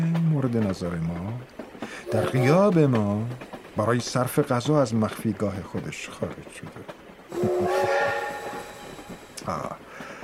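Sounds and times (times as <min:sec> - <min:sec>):
train wheels clattering on track: 0:00.0 - 0:10.2
speech: 0:00.4 - 0:07.8, 0:09.5 - 0:09.8
train brakes hissing and clanking: 0:01.4 - 0:10.2
train whistle: 0:07.3 - 0:09.4.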